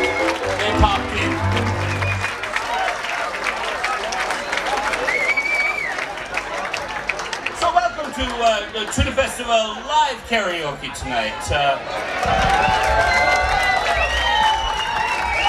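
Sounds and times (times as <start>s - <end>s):
sustained musical tone: 0.0s - 2.4s
crowd clapping and cheering in the tent at Tønder Festival: 0.0s - 9.3s, 11.8s - 15.4s
speech: 9.3s - 13.2s.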